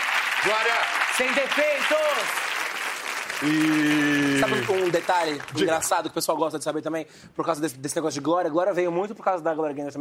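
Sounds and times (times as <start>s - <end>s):
steady audience applause: 0.0s - 6.0s
speech: 0.4s - 2.4s, 3.4s - 10.0s.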